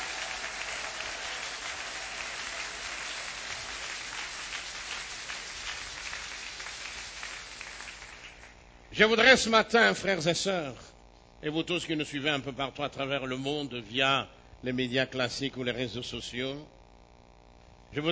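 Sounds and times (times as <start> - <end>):
audience applauding: 0.0 - 8.6
speech: 9.0 - 16.8.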